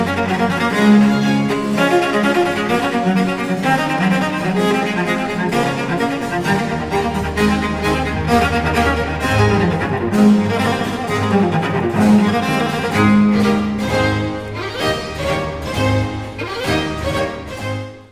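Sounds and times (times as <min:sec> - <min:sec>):
cello concerto in D major, allegro movement: 0:00.0 - 0:18.1.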